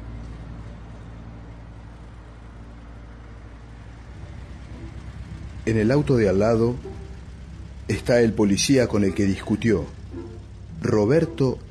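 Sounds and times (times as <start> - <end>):
car braking at a traffic light: 4.0 - 11.7
speech: 5.7 - 6.9, 7.9 - 10.0, 10.8 - 11.7.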